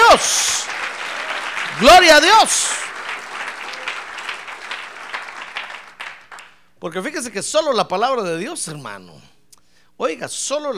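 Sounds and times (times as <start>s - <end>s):
audience applause: 0.0s - 6.6s
speech: 1.8s - 2.8s, 6.8s - 9.3s, 10.0s - 10.7s.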